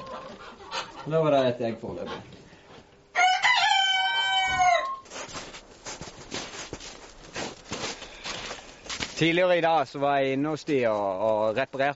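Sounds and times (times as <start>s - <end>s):
dwarf cochin chickens clucking in a henhouse: 0.0s - 2.4s
speech: 1.0s - 2.4s, 9.2s - 11.9s
dwarf cochin rooster crowing in a henhouse: 3.1s - 5.1s
scratchy rustling: 5.1s - 9.3s.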